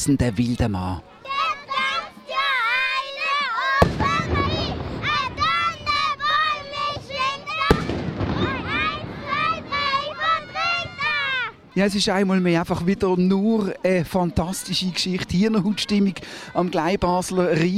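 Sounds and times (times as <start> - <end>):
speech: 0.0 - 1.4, 11.8 - 17.7
crowd chatter on the Basel Rhine bank: 0.0 - 17.7
excited children's voices on the Basel Rhine bank: 0.2 - 17.7
ceremonial gun salute shots on the Basel Rhine bank opposite the Münster: 3.8 - 10.0.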